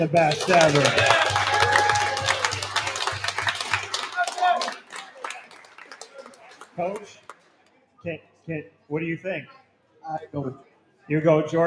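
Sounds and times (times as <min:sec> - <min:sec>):
speech: 0:00.0 - 0:01.2, 0:06.8 - 0:07.2, 0:08.0 - 0:11.6
audience applause: 0:00.0 - 0:07.4.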